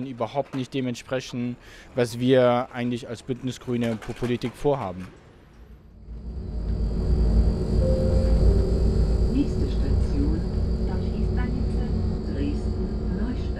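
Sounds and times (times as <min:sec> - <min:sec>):
speech: 0:00.0 - 0:05.2
high whines and squeaks: 0:05.8 - 0:13.5
moving train rumble: 0:05.9 - 0:13.5.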